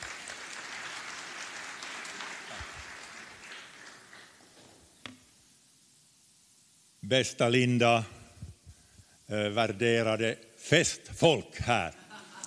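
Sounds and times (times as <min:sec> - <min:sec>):
audience applause: 0:00.0 - 0:04.4
speech: 0:07.1 - 0:08.2, 0:09.3 - 0:12.0
laughter: 0:11.9 - 0:12.4.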